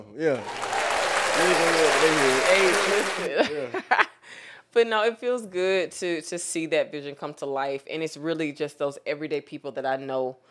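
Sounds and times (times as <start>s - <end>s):
speech: 0.0s - 0.6s, 1.4s - 10.4s
applause sound effect: 0.3s - 3.3s
laughter: 1.2s - 4.2s.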